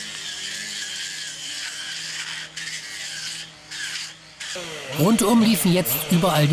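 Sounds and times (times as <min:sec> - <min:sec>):
chainsaws warming up: 0:04.4 - 0:06.4
speech: 0:04.6 - 0:06.5.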